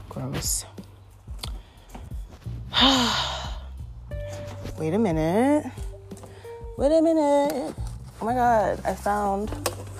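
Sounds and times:
speech: 0.2 - 0.8, 2.8 - 3.3, 4.8 - 5.8, 6.8 - 9.7
heavy breathing from exertion: 1.5 - 3.9.

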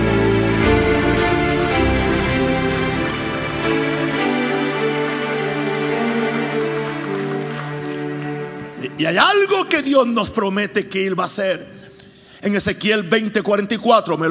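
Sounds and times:
audience applauding loudly: 0.0 - 9.5
speech: 9.0 - 14.2.

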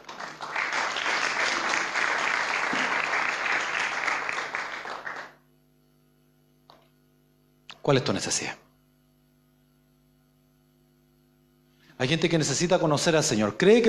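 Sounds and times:
audience applause: 0.0 - 5.4
low electrical hum: 0.0 - 13.8
speech: 7.9 - 8.6, 12.0 - 13.8.

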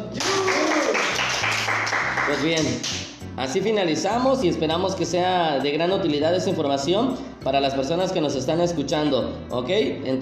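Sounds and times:
crowd applause: 0.2 - 2.4
speech: 2.3 - 10.2.

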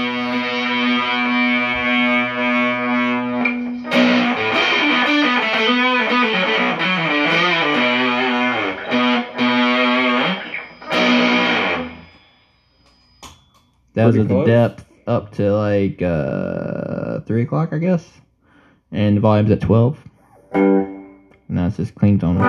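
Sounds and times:
electric guitar played through a fuzz pedal: 0.0 - 12.6, 20.3 - 21.5, 22.2 - 22.4
speech: 14.1 - 18.2, 18.9 - 20.9, 21.5 - 22.4.

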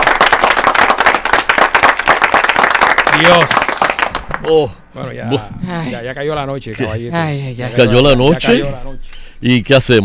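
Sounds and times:
group applause: 0.0 - 4.7
speech: 3.2 - 3.6, 4.4 - 10.0.

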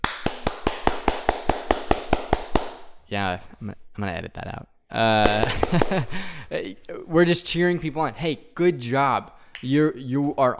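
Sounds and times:
sharp hand claps: 0.0 - 3.0, 5.2 - 6.3
speech: 3.1 - 10.5
laughter: 5.2 - 6.7.

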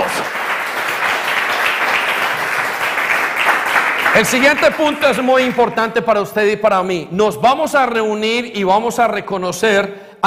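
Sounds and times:
audience applause: 0.0 - 5.6
speech: 4.2 - 10.2.

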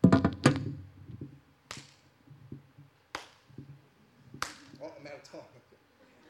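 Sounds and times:
hand clapping in a praise clap: 1.7 - 2.0, 3.1 - 3.5, 4.4 - 4.9
speech: 5.1 - 5.8.

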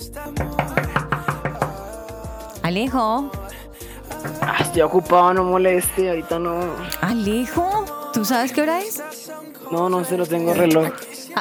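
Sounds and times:
soft sustained music: 0.0 - 11.3
speech: 0.2 - 0.8, 2.7 - 3.5, 4.2 - 11.1
knocking on a door: 0.4 - 1.9, 4.2 - 5.1.

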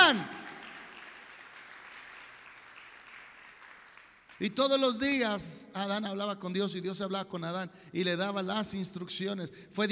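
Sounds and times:
audience applause: 0.0 - 4.4
speech: 4.4 - 9.9.

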